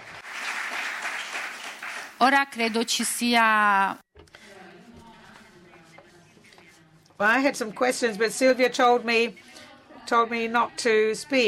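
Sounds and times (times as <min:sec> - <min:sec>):
audience applause: 0:00.0 - 0:02.3
speech: 0:02.2 - 0:04.0, 0:07.2 - 0:09.4, 0:10.1 - 0:11.4.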